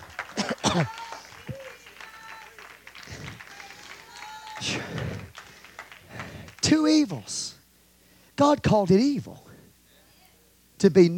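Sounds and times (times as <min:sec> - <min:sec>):
audience clapping hands in praise: 0:00.0 - 0:07.5
speech: 0:00.7 - 0:01.0, 0:06.7 - 0:07.6, 0:08.4 - 0:09.5, 0:10.8 - 0:11.1.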